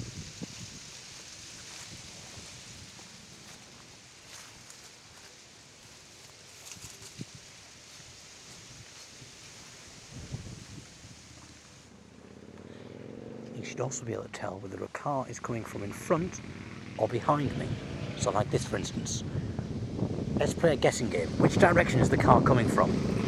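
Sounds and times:
footsteps through leaves: 0.0s - 11.9s
speech: 13.6s - 19.4s, 20.4s - 23.1s.

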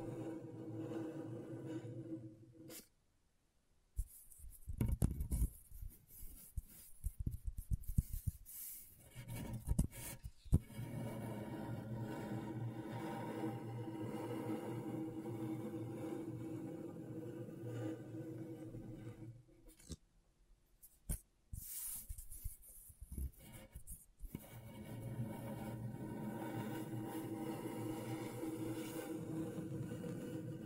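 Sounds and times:
dry scratching on a scratchboard in a small room: 0.0s - 2.8s, 4.0s - 19.8s, 21.6s - 30.6s.

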